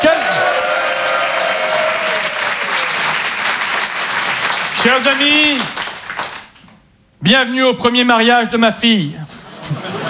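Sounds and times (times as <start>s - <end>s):
crowd applause: 0.0s - 6.6s
speech: 4.8s - 5.8s, 7.2s - 9.8s
laughter: 9.4s - 10.0s.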